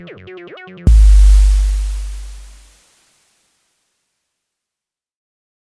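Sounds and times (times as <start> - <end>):
loud warning bass: 0.9 - 2.8.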